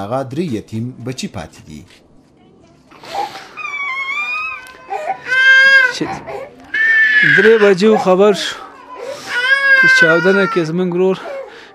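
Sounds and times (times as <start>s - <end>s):
speech: 0.0s - 2.1s, 6.0s - 6.5s, 7.2s - 8.6s, 9.8s - 11.3s
breathy sobs and choked cries: 3.0s - 11.7s
grieving relatives wailing in mourning: 3.6s - 10.6s.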